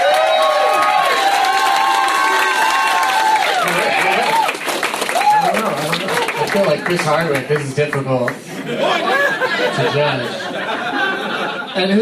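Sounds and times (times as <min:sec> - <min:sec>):
voices whooping and shouting: 0:00.0 - 0:06.3
audience applause: 0:00.0 - 0:08.4
laughter: 0:03.6 - 0:04.5, 0:05.5 - 0:07.7, 0:08.4 - 0:12.0
speech: 0:06.9 - 0:08.8, 0:09.7 - 0:10.5, 0:11.8 - 0:12.0.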